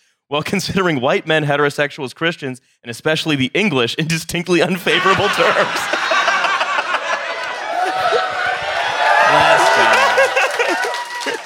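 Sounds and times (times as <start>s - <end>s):
speech: 0.3s - 6.0s
scattered laughter: 4.9s - 8.7s, 9.3s - 11.4s
live audience crowd applause: 4.9s - 11.4s.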